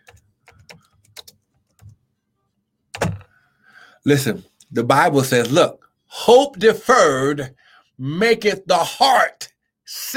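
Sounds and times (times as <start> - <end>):
typing on a keyboard: 0.0 - 2.0
speech: 4.0 - 10.1.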